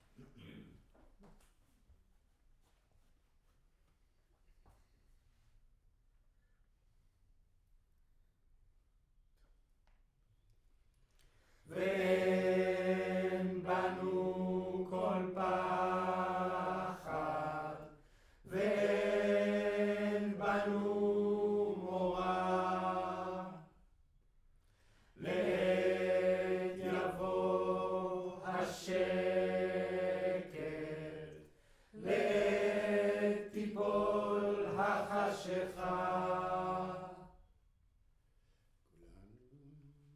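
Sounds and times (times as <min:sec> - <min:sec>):
choir singing in room: 0:11.7 - 0:23.8, 0:25.2 - 0:37.4.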